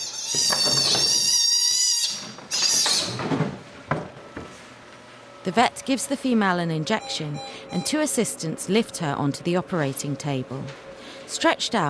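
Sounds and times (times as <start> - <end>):
otter pup screaming for its mother: 0.0 - 3.2
speech: 5.5 - 11.8.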